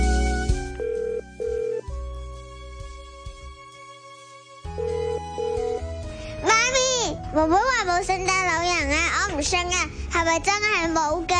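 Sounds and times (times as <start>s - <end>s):
soft musical backing: 0.0s - 11.3s
telephone ringing with high-pitched warbling electronic tones: 0.8s - 1.8s, 4.8s - 5.8s
speech: 7.4s - 11.3s.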